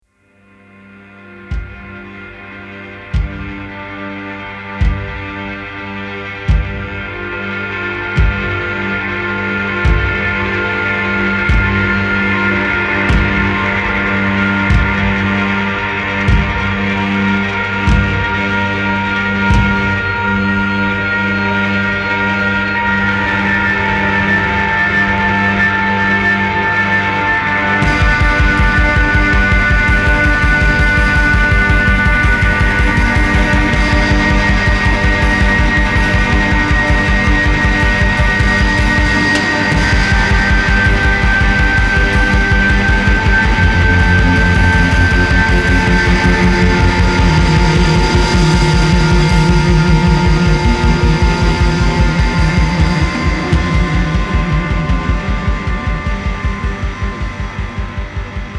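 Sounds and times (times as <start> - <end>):
ambient music: 0.2 - 58.5.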